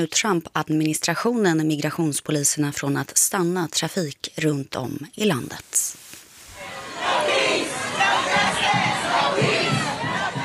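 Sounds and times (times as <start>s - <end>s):
speech: 0.0s - 6.0s
large protest crowd shouting and chanting: 6.5s - 10.4s.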